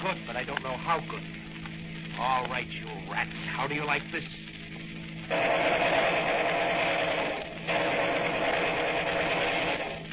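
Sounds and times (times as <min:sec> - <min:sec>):
speech: 0:00.0 - 0:01.5, 0:02.2 - 0:04.5, 0:05.3 - 0:06.2
synchronized machine gun firing: 0:05.3 - 0:10.1.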